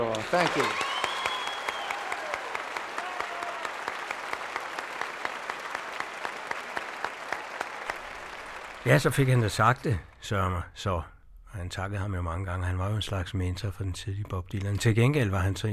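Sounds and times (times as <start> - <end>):
speech: 0.0 - 0.9, 8.8 - 15.7
concert audience applauding: 0.0 - 10.2.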